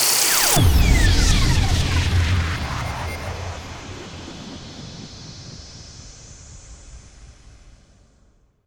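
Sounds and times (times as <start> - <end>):
burst rise and impact effect: 0.1 - 8.1.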